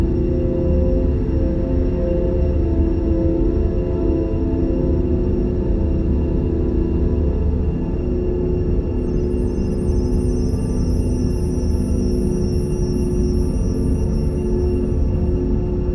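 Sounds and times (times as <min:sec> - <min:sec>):
deep space sleep drone: 0:00.0 - 0:15.9
spaceship ambience: 0:08.8 - 0:15.9.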